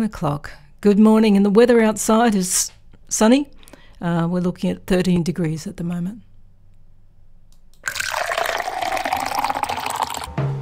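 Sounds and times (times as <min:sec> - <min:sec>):
speech: 0:00.0 - 0:06.3
coffee being poured into a cup: 0:07.8 - 0:10.3.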